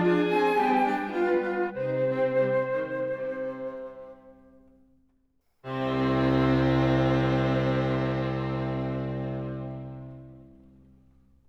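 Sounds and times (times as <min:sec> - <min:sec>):
flute quartet playing in C: 0:00.0 - 0:04.5, 0:05.7 - 0:10.4.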